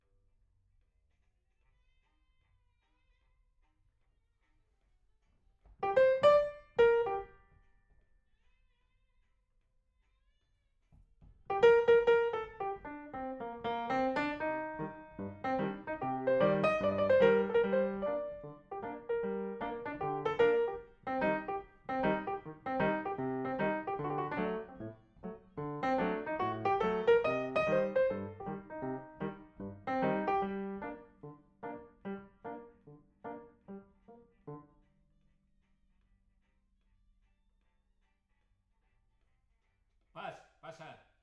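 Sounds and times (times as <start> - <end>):
piano: 5.8 - 7.5, 11.5 - 34.8.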